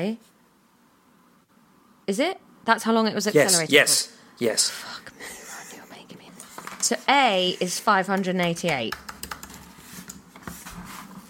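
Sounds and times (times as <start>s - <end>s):
speech: 0.0s - 0.3s, 2.1s - 5.4s, 6.8s - 9.1s
keys tapped on a laptop keyboard to unlock it: 8.0s - 10.5s.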